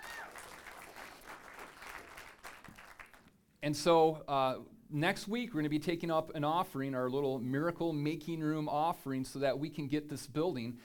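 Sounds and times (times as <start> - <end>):
audience clapping: 0.0 - 3.4
speech: 3.6 - 10.8.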